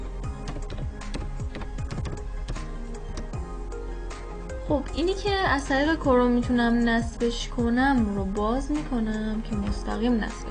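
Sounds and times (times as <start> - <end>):
computer keyboard typing a search for a browser extension: 0.3 - 3.4
speech: 4.7 - 10.4.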